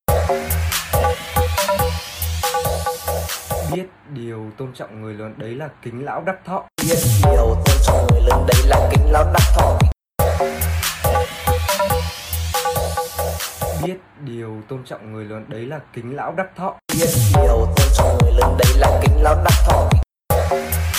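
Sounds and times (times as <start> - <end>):
TikTok remix music: 0.0 - 3.8, 6.8 - 13.9, 16.9 - 20.9.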